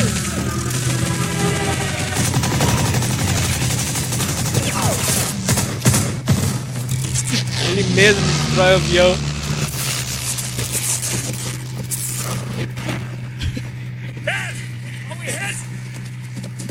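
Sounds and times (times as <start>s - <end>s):
steady low droning hum: 0.0s - 16.6s
machine gun fire: 1.4s - 6.9s
speech: 8.0s - 9.3s.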